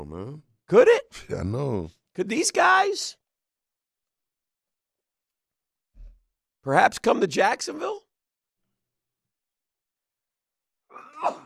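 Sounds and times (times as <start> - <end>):
speech: 0.0 - 3.2, 6.6 - 8.0, 11.2 - 11.4
person sneezing: 10.9 - 11.4.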